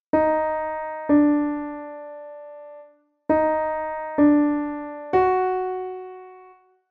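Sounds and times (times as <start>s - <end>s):
piano melody opening passage: 0.1s - 6.8s.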